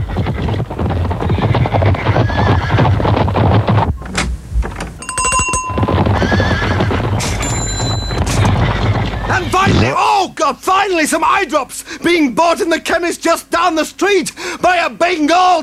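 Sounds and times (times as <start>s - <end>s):
herd of zebras whinnying and neighing: 0.0s - 3.1s, 5.8s - 10.0s
steady clatter of many zebra hooves: 0.0s - 9.9s
short bright bell ringing: 5.0s - 6.0s, 7.4s - 8.4s
speech: 10.9s - 15.6s.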